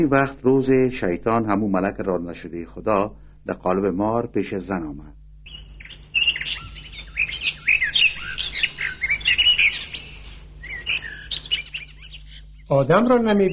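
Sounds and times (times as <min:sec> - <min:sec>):
speech: 0:00.0 - 0:05.2, 0:12.7 - 0:13.5
songbirds singing: 0:05.4 - 0:13.5.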